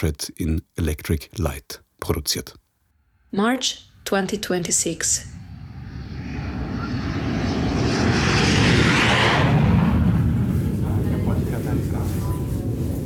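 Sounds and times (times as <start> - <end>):
speech: 0.0 - 2.6, 3.3 - 5.4
aircraft engine roaring at the small airport in Padua, northern Italy: 5.4 - 12.9.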